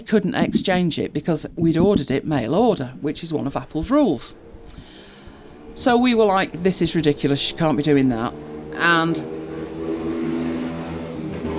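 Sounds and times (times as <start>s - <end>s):
speech: 0.0s - 4.8s, 5.8s - 9.4s
motorcycle with no exhaust revving loudly: 3.8s - 11.5s.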